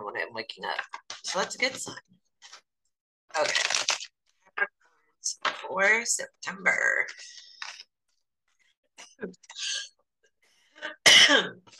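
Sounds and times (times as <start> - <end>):
speech: 0.2 - 2.1, 3.4 - 3.7, 5.7 - 7.4, 9.2 - 9.6
person coughing from choking on saliva: 10.9 - 11.6.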